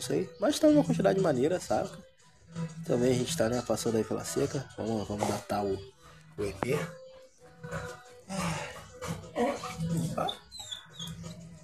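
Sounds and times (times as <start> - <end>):
speech: 0.0 - 7.0, 7.6 - 10.4
dog trying to bark: 9.0 - 11.6.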